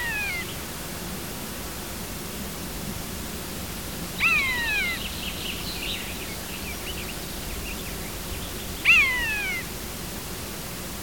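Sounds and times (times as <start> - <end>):
steady hiss: 0.0 - 11.0
common buzzard mewing: 4.2 - 5.0, 8.9 - 9.7.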